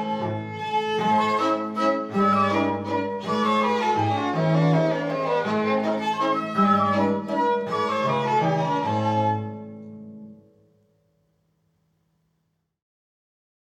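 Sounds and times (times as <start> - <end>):
waltz music: 0.0 - 10.4.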